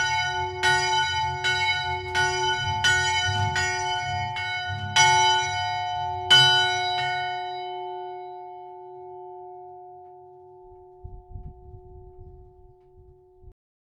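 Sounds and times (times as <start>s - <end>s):
bell ringing: 0.1s - 9.4s.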